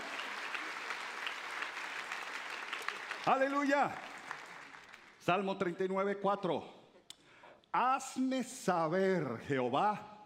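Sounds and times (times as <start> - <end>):
audience applause: 0.0 - 5.2
speech: 3.2 - 4.1, 5.2 - 6.8, 7.7 - 10.1.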